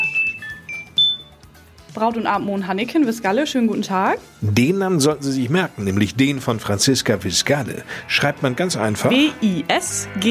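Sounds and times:
telephone ringing: 0:00.0 - 0:01.4
speech: 0:02.0 - 0:10.2.

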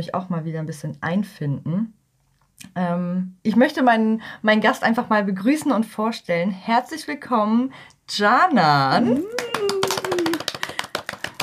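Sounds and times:
speech: 0:00.0 - 0:02.0, 0:02.6 - 0:09.5
people clapping hands: 0:09.1 - 0:11.4.

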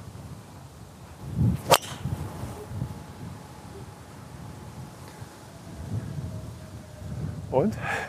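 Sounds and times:
low rumble of wind noise: 0:00.0 - 0:08.0
golf club striking ball off the tee: 0:01.5 - 0:03.8
golf club swish: 0:01.6 - 0:02.1
speech: 0:07.6 - 0:08.0.

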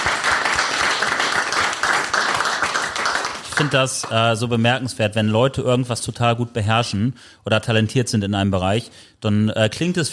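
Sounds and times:
audience applause: 0:00.0 - 0:04.1
speech: 0:03.6 - 0:10.1.

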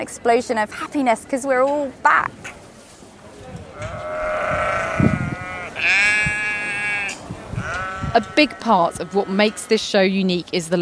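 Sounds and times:
speech: 0:00.0 - 0:02.6, 0:08.2 - 0:10.7
sheep bleating: 0:03.8 - 0:09.8.

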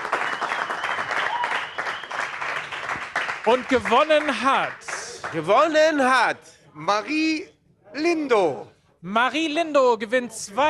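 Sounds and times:
crowd applause: 0:00.0 - 0:05.6
speech: 0:03.4 - 0:10.6.

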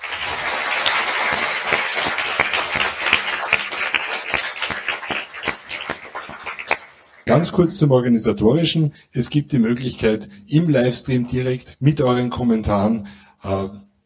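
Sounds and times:
audience applause: 0:00.0 - 0:07.4
speech: 0:07.4 - 0:13.8.

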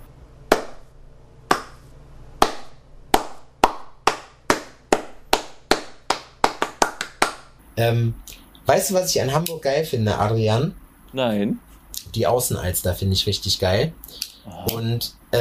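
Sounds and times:
person clapping hands: 0:01.5 - 0:01.8, 0:02.4 - 0:07.5
speech: 0:07.8 - 0:15.4.

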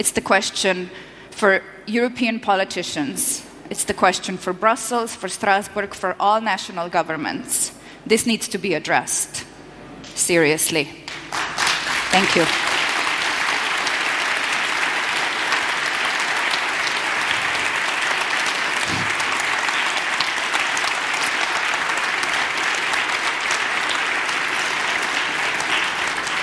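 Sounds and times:
speech: 0:00.0 - 0:09.5, 0:10.1 - 0:11.0, 0:12.1 - 0:12.6
crowd applause: 0:11.3 - 0:26.4.

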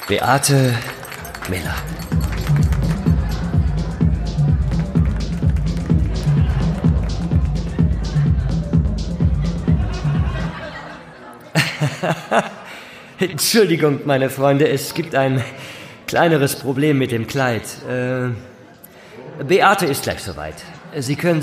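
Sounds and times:
audience clapping rhythmically: 0:00.0 - 0:09.6
speech: 0:00.1 - 0:02.6, 0:12.0 - 0:12.6, 0:13.2 - 0:18.5, 0:19.4 - 0:21.4
laughter: 0:00.7 - 0:13.4.

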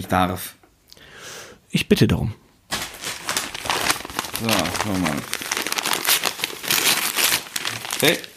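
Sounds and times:
speech: 0:00.0 - 0:00.6, 0:01.7 - 0:02.4, 0:04.4 - 0:05.4, 0:08.0 - 0:08.3
paper or plastic parcel being unwrapped: 0:02.7 - 0:08.3.

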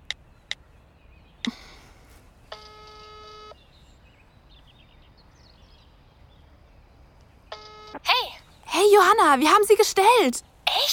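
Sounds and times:
telephone keypad tones: 0:02.5 - 0:03.6, 0:07.5 - 0:08.0
speech: 0:08.8 - 0:10.5.

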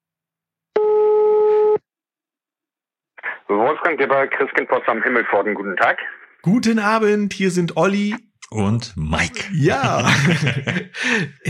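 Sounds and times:
telephone ringing tone: 0:00.8 - 0:01.8
speech: 0:03.5 - 0:11.4
laughter: 0:09.4 - 0:11.4.

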